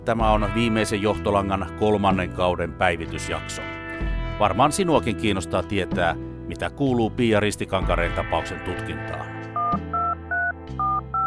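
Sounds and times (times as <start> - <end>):
speech: 0.0 - 3.8, 4.4 - 9.3
phone keypad tones as a number is dialed: 9.6 - 11.2.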